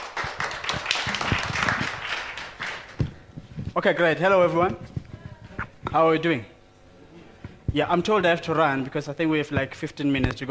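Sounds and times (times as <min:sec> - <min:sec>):
audience applause: 0:00.0 - 0:03.1
speech: 0:03.8 - 0:04.9, 0:05.9 - 0:06.5, 0:07.7 - 0:10.4.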